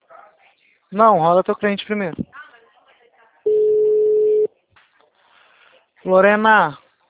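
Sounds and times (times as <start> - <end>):
speech: 0.9 - 2.3, 6.0 - 6.8
unanswered telephone call ringing: 3.5 - 4.5.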